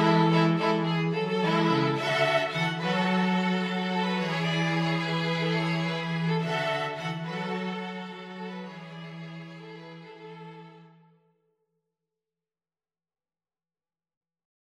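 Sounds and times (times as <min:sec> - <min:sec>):
string quintet playing: 0:00.0 - 0:10.9.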